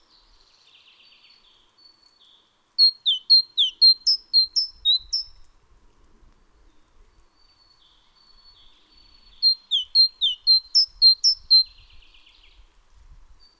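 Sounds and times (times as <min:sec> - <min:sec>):
Great tit song, Parus major: 0:02.8 - 0:05.4, 0:07.7 - 0:12.0.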